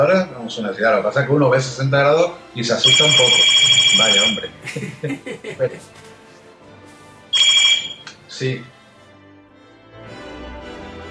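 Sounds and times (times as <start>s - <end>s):
speech: 0.0s - 6.0s, 8.4s - 8.8s
phone ringtone electronic trill: 2.8s - 4.6s, 7.3s - 8.1s
laughter: 4.2s - 6.0s.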